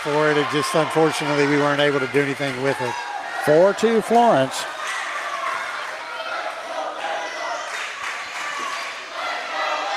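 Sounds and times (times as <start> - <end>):
speech: 0.0 - 4.8
student crowd cheering at a volleyball game in Florence: 0.0 - 9.9.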